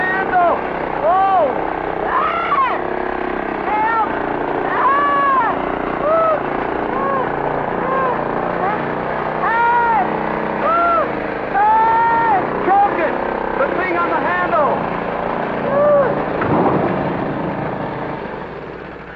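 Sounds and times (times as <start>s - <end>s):
runaway motor roaring: 0.0s - 19.1s
people shouting: 0.2s - 2.9s, 3.6s - 12.9s, 15.7s - 16.3s.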